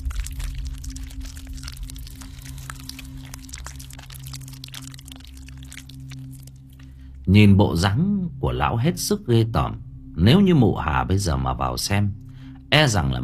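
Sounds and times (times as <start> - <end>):
crunching raw eggs with shells: 0.0 - 6.9
speech: 7.3 - 13.2.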